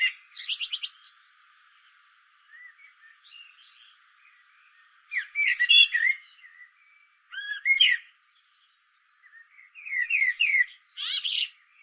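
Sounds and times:
common blackbird Turdus merula singing: 0.0s - 11.8s.

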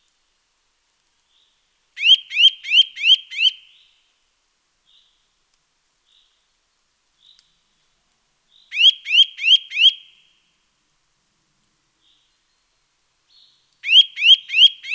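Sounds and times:
Eurasian nuthatch Sitta europaea calling rising whistled notes: 2.0s - 3.6s, 8.7s - 10.0s, 13.8s - 14.9s.

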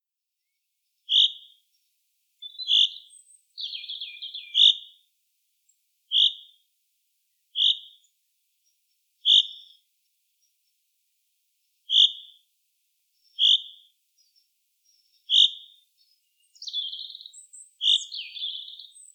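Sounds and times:
common chaffinch Fringilla coelebs giving short sharp calls: 1.1s - 1.6s, 2.4s - 4.9s, 6.1s - 6.6s, 7.6s - 8.0s, 9.3s - 9.8s, 11.9s - 12.4s, 13.3s - 13.9s, 15.0s - 15.8s, 16.4s - 19.1s.

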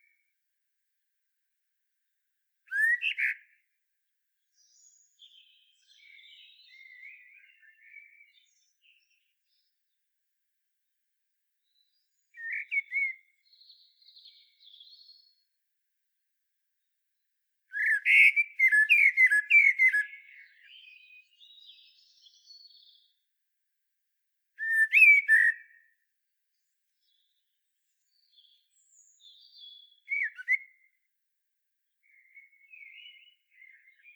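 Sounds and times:
common blackbird singing: 2.7s - 3.4s, 4.6s - 9.7s, 11.7s - 15.4s, 17.7s - 23.1s, 24.6s - 25.8s, 27.0s - 30.9s, 32.0s - 34.1s.

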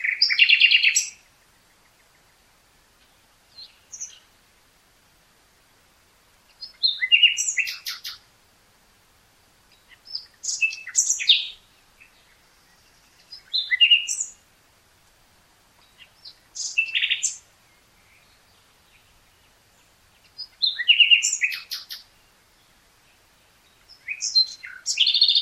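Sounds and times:
common nightingale song: 0.0s - 25.4s
hiss: 0.0s - 25.4s.

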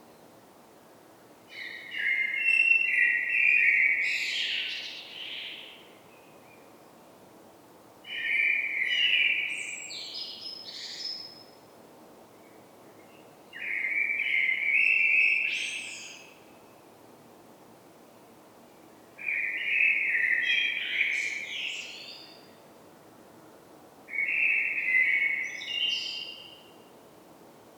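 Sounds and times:
common blackbird song: 1.5s - 6.9s, 8.1s - 11.6s, 12.4s - 16.4s, 19.2s - 22.6s, 24.1s - 26.8s.

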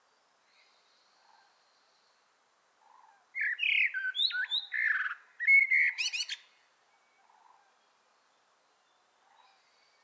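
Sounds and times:
common blackbird Turdus merula singing fluty phrases: 3.4s - 6.4s.

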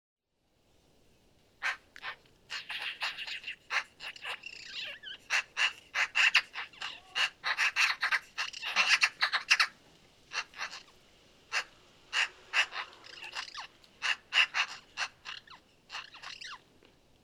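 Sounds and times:
Eurasian magpie Pica pica chattering in a rattling run of harsh notes: 1.6s - 9.7s, 10.3s - 10.9s, 11.5s - 16.6s.

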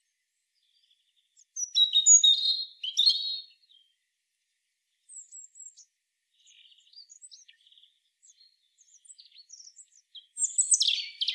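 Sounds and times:
European robin Erithacus rubecula singing high sweet whistles and jumbled trills: 0.7s - 3.9s, 5.1s - 11.3s.

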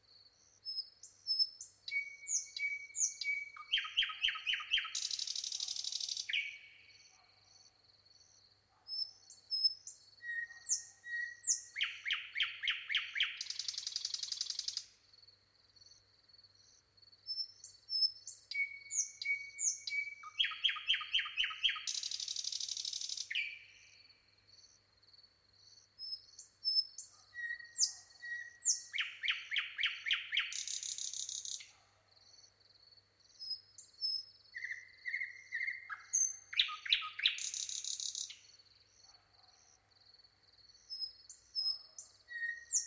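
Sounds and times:
common nightingale song: 0.0s - 42.8s
faint birds: 0.0s - 42.8s.

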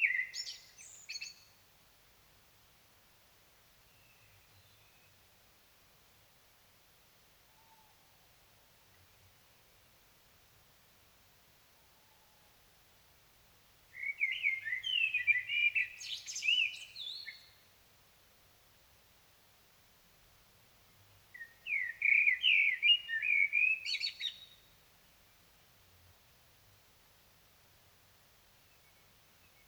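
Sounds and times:
Common blackbird singing: 0.0s - 1.5s, 14.0s - 17.6s, 21.4s - 24.7s.

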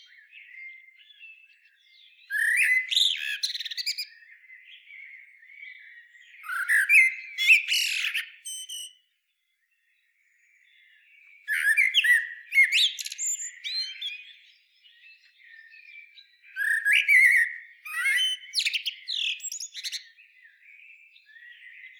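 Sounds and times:
common blackbird Turdus merula singing: 0.0s - 21.9s.

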